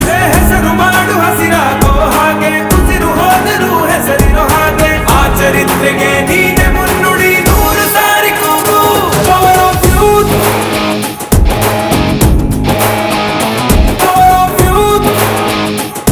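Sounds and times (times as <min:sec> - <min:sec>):
Kannada ringtone: 0:00.0 - 0:16.1.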